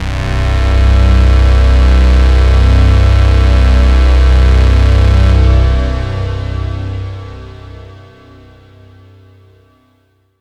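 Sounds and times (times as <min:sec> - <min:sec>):
IDM tone: 0:00.0 - 0:07.5.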